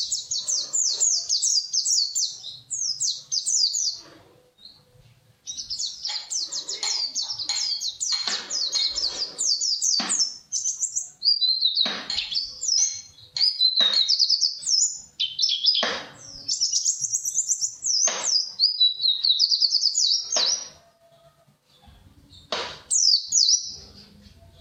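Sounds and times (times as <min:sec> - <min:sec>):
white-eye twittering song with descending chirps: 0:00.0 - 0:04.0, 0:05.4 - 0:20.8.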